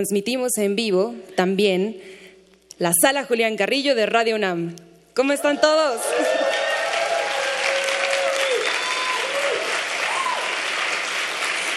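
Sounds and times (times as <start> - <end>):
speech: 0.0 - 2.2, 2.8 - 6.4
whoops and cheers: 5.4 - 10.8
large live audience applauding in a hall: 6.1 - 11.7.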